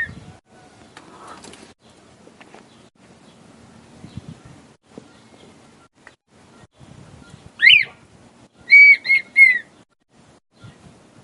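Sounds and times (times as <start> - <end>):
male red-winged tinamou singing to the female: 7.2 - 9.8.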